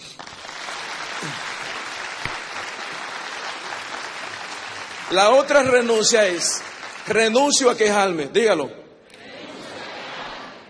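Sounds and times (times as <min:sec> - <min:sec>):
audience applauding: 0:00.0 - 0:08.2
speech: 0:01.2 - 0:01.4, 0:05.1 - 0:08.8.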